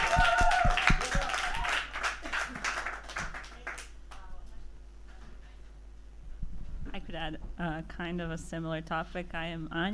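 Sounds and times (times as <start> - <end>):
applause from a small group: 0.0 - 4.3
speech: 7.2 - 9.9.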